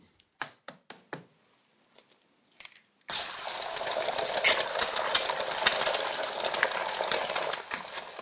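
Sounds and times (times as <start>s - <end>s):
eggs frying in a pan: 3.1s - 8.2s.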